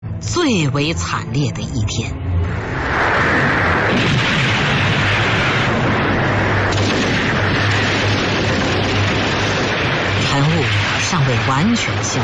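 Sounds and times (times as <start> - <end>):
speech: 0.2 - 4.1, 10.6 - 12.2
gunfire and artillery: 3.8 - 12.2.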